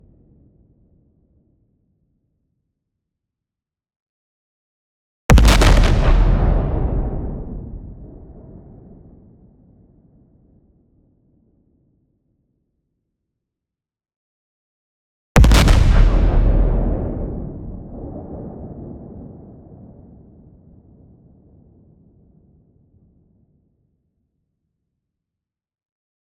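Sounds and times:
long explosion with soft pitch-descending tail: 5.3 - 9.6, 15.4 - 21.8.

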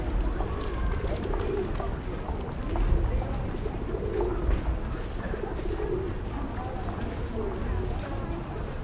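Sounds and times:
pigeons in an urban park: 0.0 - 8.2
people in an urban park: 0.0 - 8.8.

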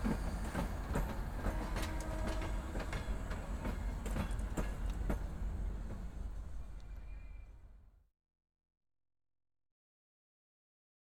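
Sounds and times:
train station exterior ambience: 0.0 - 8.0.

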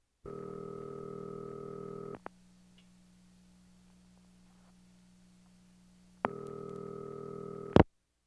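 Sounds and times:
household telephones: 0.3 - 2.3, 6.3 - 7.8.

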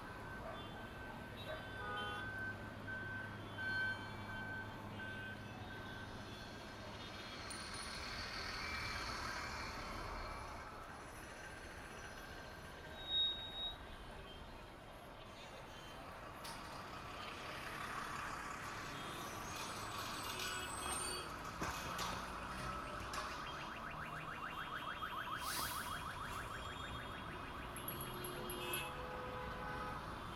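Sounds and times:
town ambience: 0.0 - 30.3.

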